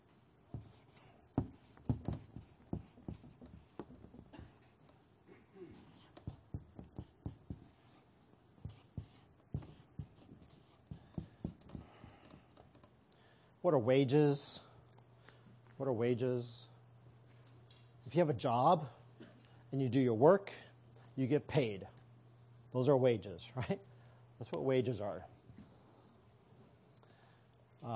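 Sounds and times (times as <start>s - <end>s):
marker writing on a board: 0.0s - 13.0s
speech: 13.6s - 14.6s, 15.8s - 16.7s, 18.1s - 19.0s, 19.7s - 20.6s, 21.2s - 22.0s, 22.7s - 25.3s.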